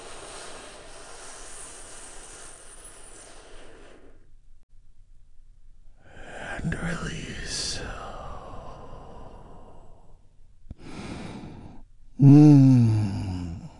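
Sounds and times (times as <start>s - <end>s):
deep breath during a guided calming breathing exercise: 0.0s - 4.3s, 7.4s - 13.7s
person speaking: 6.2s - 9.0s.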